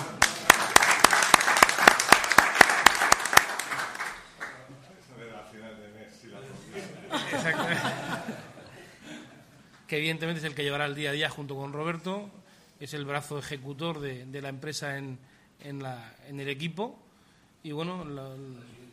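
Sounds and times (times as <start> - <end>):
audience applause: 0.0 - 4.6
laughter: 6.4 - 9.5
speech: 9.9 - 17.0, 17.6 - 18.8.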